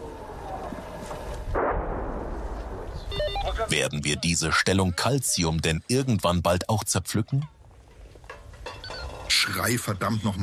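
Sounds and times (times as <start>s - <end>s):
grenade explosion: 1.5s - 3.6s
speech: 3.7s - 7.6s, 9.6s - 10.4s.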